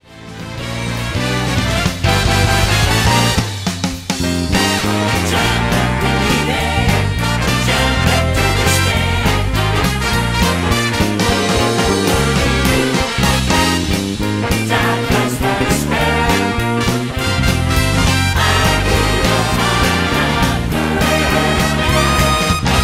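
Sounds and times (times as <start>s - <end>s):
instrumental music: 0.0s - 22.8s.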